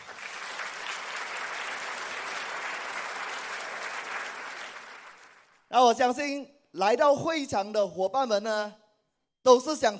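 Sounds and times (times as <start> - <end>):
audience applause: 0.0 - 5.6
speech: 5.7 - 8.8, 9.4 - 9.9.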